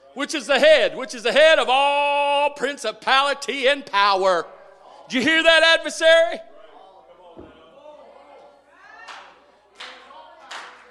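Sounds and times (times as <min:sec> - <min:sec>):
speech: 0:00.2 - 0:06.5
hand claps: 0:09.1 - 0:10.8.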